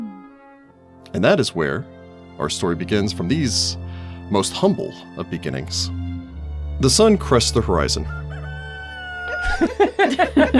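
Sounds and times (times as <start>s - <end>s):
speech: 1.1s - 6.0s, 6.8s - 8.2s, 9.6s - 10.5s
rooster crowing sound effect: 8.0s - 10.2s
laughter: 9.1s - 10.5s.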